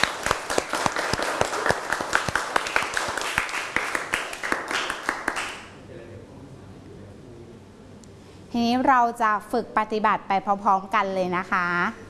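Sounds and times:
audience applause: 0.0s - 5.7s
speech: 8.6s - 12.0s.

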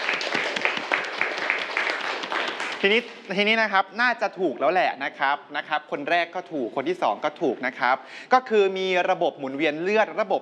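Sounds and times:
students applauding a classmate: 0.0s - 3.3s
speech: 2.8s - 10.3s.

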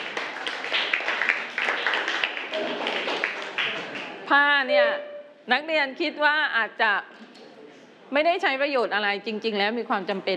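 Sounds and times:
group of students clapping: 0.0s - 4.2s
speech: 4.3s - 7.2s, 8.1s - 10.3s.

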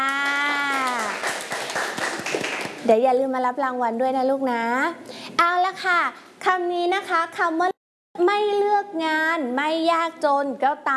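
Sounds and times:
children clapping for their classmates: 0.0s - 2.8s
speech: 2.9s - 7.7s, 8.3s - 10.9s.

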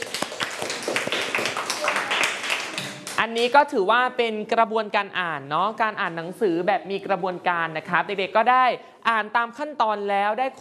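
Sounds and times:
group of children clapping hands in a classroom: 0.0s - 3.2s
speech: 3.3s - 10.5s.

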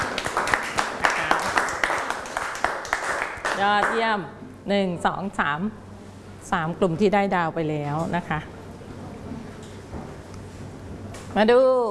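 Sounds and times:
room full of children clapping: 0.0s - 4.1s
speech: 3.6s - 5.8s, 6.4s - 8.5s, 11.4s - 11.9s.

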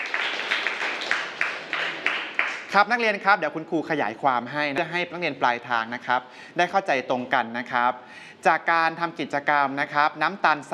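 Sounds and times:
students clapping for classmates after a science experiment presentation: 0.0s - 2.7s
speech: 2.7s - 10.7s.

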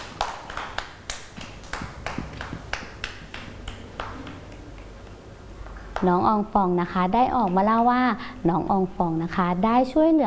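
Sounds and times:
children clapping hands: 0.0s - 6.1s
speech: 6.0s - 10.2s.

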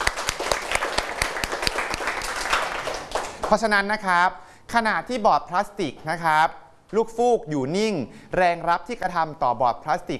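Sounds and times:
students clapping for a classmate: 0.0s - 3.7s
speech: 3.5s - 10.1s.

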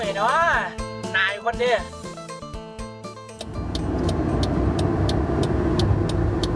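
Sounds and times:
speech: 0.0s - 0.4s, 1.5s - 2.1s
regular faint ticking: 3.4s - 6.5s
vehicle engine and road rumble while overtaking on the left: 3.4s - 6.5s.

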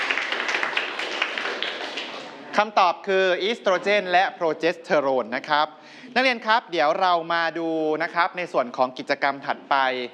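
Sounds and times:
students in a classroom clapping for a classmate: 0.0s - 2.4s
speech: 2.6s - 10.1s.

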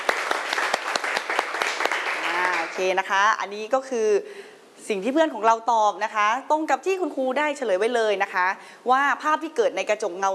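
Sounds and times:
loud applause from students: 0.0s - 2.8s
speech: 2.8s - 10.3s.

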